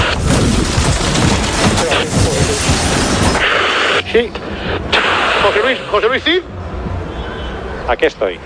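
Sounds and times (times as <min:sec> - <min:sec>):
helicopter crash effect: 0:00.0 - 0:05.9
speech: 0:04.2 - 0:04.4, 0:05.5 - 0:06.6, 0:07.9 - 0:08.4.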